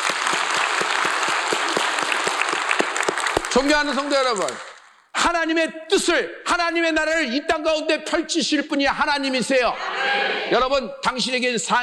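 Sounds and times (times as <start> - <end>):
crowd applauding: 0.0 - 5.0
speech: 3.6 - 4.7, 5.3 - 11.8.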